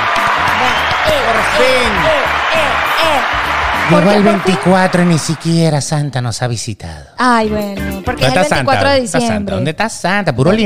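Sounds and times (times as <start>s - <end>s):
applause sound effect: 0.0s - 5.7s
speech: 1.0s - 10.6s.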